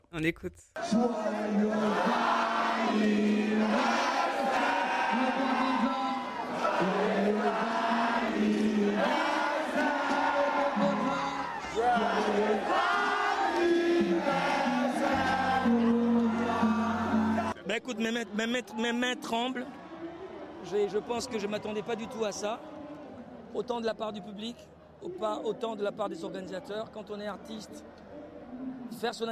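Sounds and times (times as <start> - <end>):
speech: 0.1 - 10.2, 17.8 - 19.8, 20.6 - 22.8, 23.5 - 29.3
large festival audience singing a birthday song in chorus: 0.8 - 17.6
festival crowd whooping and cheering: 0.8 - 23.4.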